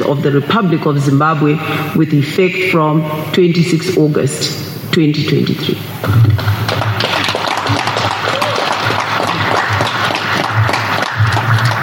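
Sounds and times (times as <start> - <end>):
speech: 0.0 - 6.8
officials applauding an election result: 6.2 - 11.8.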